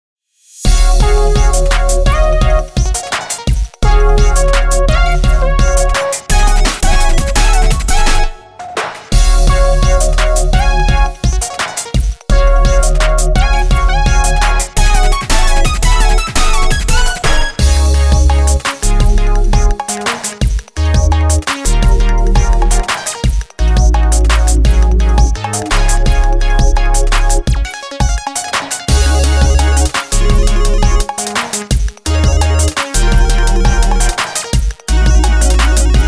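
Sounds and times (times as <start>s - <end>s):
dub music: 0.6s - 36.0s.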